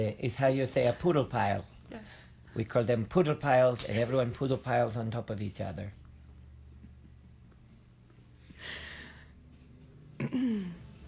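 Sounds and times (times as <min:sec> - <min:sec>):
speech: 0:00.0 - 0:06.0, 0:10.3 - 0:10.8
throat clearing: 0:10.2 - 0:10.9.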